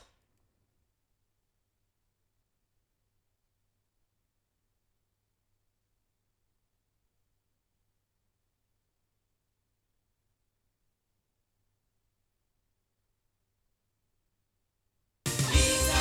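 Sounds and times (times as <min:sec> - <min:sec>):
loudspeakers: 0:15.3 - 0:15.9.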